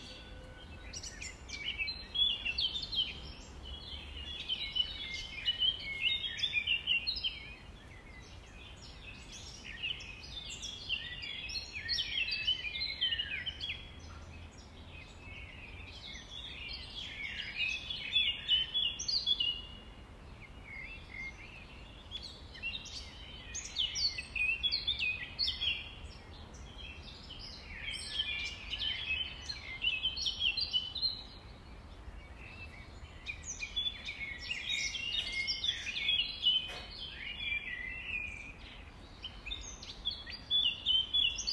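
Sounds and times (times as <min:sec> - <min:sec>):
common nightingale singing: 0:00.0 - 0:41.5
soft steady hiss: 0:00.0 - 0:41.5.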